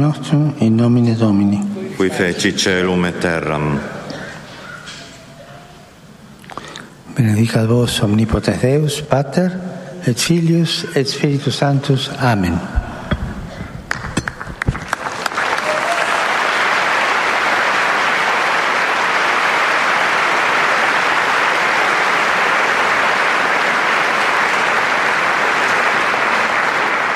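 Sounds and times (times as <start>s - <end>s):
speech: 0.0s - 4.0s, 7.2s - 12.8s
pilgrims' loud applause: 13.9s - 27.1s.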